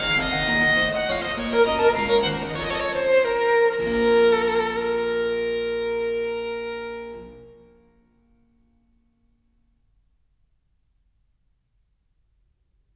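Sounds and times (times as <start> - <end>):
harpsichord: 0.0 - 4.7
violin: 0.0 - 8.2.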